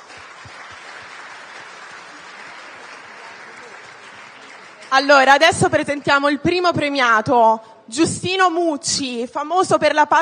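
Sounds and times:
audience applause: 0:00.0 - 0:05.4
speech: 0:04.9 - 0:10.1.

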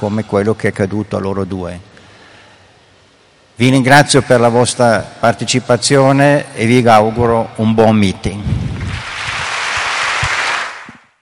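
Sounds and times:
speech: 0:00.0 - 0:01.9, 0:03.6 - 0:08.6
audience applauding a cultural talk at the Rimini Meeting: 0:08.8 - 0:11.1.

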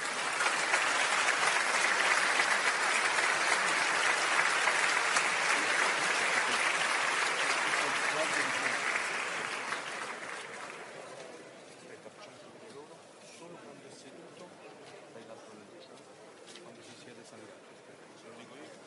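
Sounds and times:
crowd giving warm applause for the band: 0:00.0 - 0:11.3.

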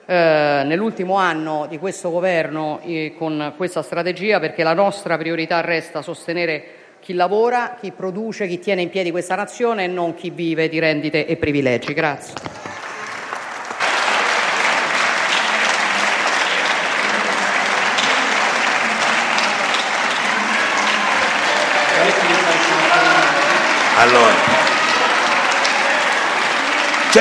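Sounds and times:
speech: 0:00.1 - 0:12.6, 0:24.0 - 0:24.5
sustained applause in a parliament chamber: 0:12.3 - 0:27.1.

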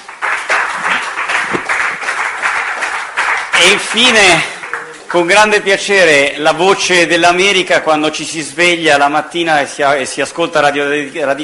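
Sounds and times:
audience applause: 0:00.0 - 0:05.4
speech: 0:03.6 - 0:04.5, 0:05.1 - 0:11.4.

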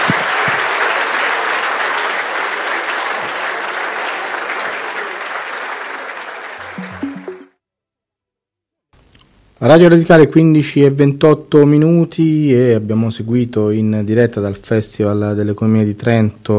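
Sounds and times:
audience applause: 0:00.0 - 0:07.5
low tones: 0:06.6 - 0:07.6
speech: 0:09.6 - 0:16.5.

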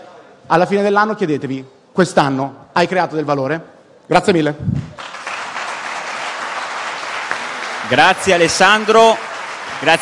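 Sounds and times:
speech: 0:00.5 - 0:05.0, 0:07.9 - 0:10.0
audience applauding a speaker at the end of a talk: 0:05.0 - 0:10.0.

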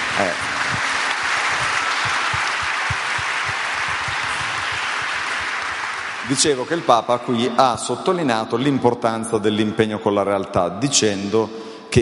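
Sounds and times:
audience applause: 0:00.0 - 0:07.0
speech: 0:00.2 - 0:01.0, 0:06.3 - 0:11.9.

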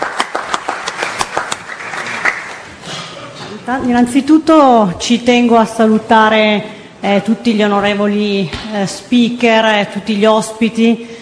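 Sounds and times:
audience applause welcoming a speaker: 0:00.0 - 0:02.8
speech: 0:03.7 - 0:11.1.

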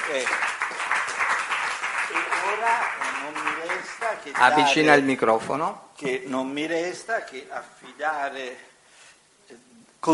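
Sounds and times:
audience applause: 0:00.0 - 0:04.8
speech: 0:00.1 - 0:00.6, 0:02.6 - 0:08.7, 0:09.5 - 0:10.1.

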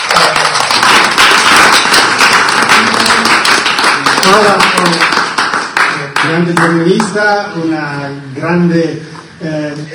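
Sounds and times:
audience applause: 0:00.0 - 0:06.7
speech: 0:04.3 - 0:04.7, 0:06.2 - 0:09.9.

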